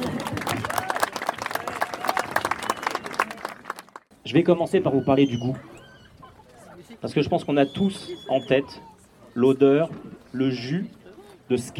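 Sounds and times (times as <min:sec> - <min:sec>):
audience applause: 0:00.0 - 0:04.1
speech: 0:04.3 - 0:05.7, 0:07.0 - 0:11.7.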